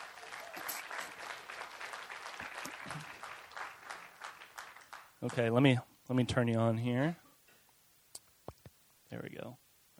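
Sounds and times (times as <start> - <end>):
audience applause welcoming a guest: 0.0 - 5.8
speech: 5.2 - 7.2, 9.4 - 9.6.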